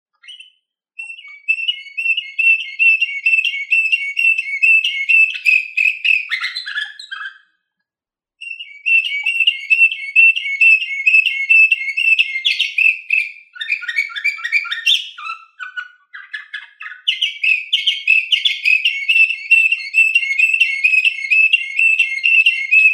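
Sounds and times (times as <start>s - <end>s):
canary song: 0.2s - 7.6s, 8.4s - 22.9s.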